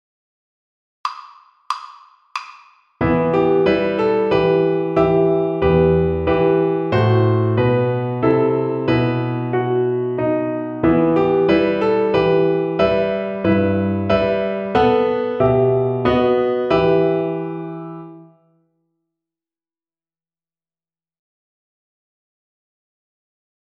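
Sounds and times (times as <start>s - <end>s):
piano accompaniment: 3.0s - 18.4s.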